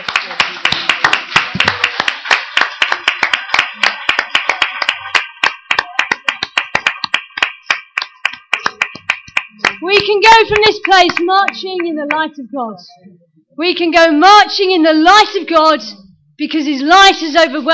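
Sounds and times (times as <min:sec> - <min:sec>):
audience clapping hands: 0:00.0 - 0:12.4
speech: 0:09.8 - 0:17.7.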